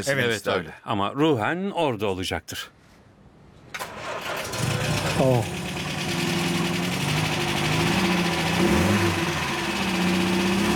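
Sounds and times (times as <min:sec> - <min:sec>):
speech: 0:00.0 - 0:02.8, 0:05.2 - 0:05.6, 0:08.6 - 0:09.2
classic car engine running: 0:04.5 - 0:10.7.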